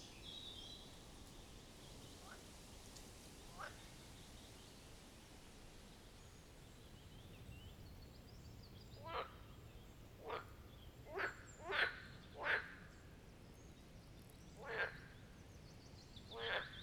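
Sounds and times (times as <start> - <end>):
low steady hiss: 0.0 - 16.8
marsh frogs croaking: 11.1 - 12.8, 14.6 - 15.1, 16.4 - 16.8.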